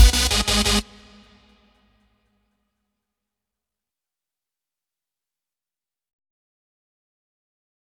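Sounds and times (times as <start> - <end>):
gabba hop beat at 88 bpm: 0.0 - 1.2.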